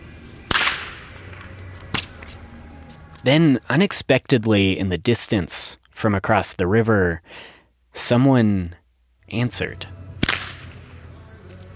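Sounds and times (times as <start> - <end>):
whip crack with slapback echo: 0.5 - 2.3, 10.2 - 10.9
speech: 3.2 - 10.0.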